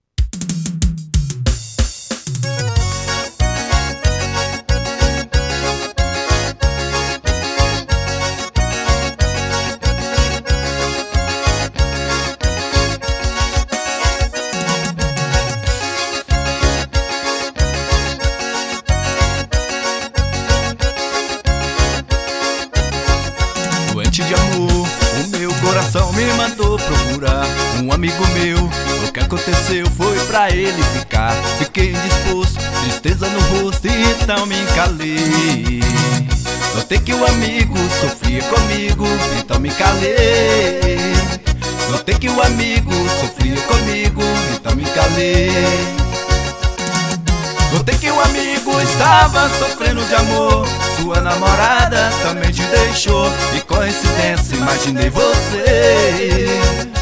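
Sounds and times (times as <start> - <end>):
forró music: 0.3 - 56.9.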